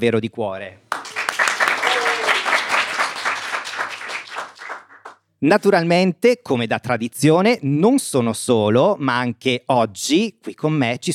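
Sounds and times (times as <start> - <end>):
speech: 0.0 - 0.9, 5.4 - 11.1
crowd applauding: 0.9 - 5.2.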